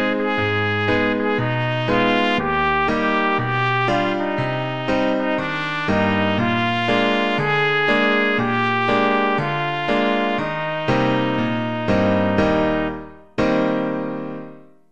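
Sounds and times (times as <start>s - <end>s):
trumpet: 0.0s - 14.7s.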